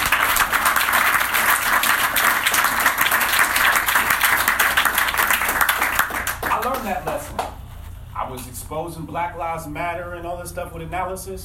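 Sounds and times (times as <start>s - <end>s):
applause: 0.0s - 7.6s
speech: 8.7s - 11.4s.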